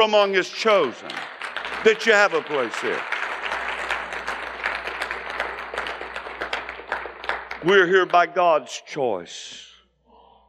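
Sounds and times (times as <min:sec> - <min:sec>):
speech: 0:00.0 - 0:03.1, 0:07.6 - 0:09.7
crowd of people applauding together: 0:00.0 - 0:08.3.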